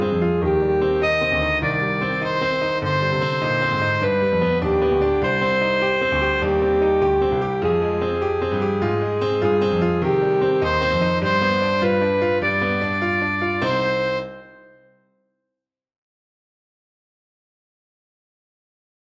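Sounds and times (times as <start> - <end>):
alto saxophone: 0.1 - 14.8.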